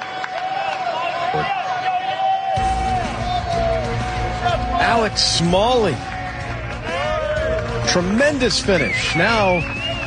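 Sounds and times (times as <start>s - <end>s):
applause: 0.0s - 2.1s, 3.8s - 10.0s
golf crowd cheering and hollering: 0.0s - 10.0s
speech: 4.9s - 6.1s, 7.9s - 9.8s
long shrill whistle: 8.7s - 10.0s.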